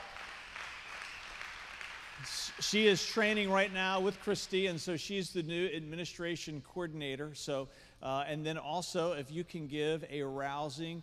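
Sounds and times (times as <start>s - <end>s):
audience applause: 0.0s - 4.7s
speech: 2.2s - 11.0s.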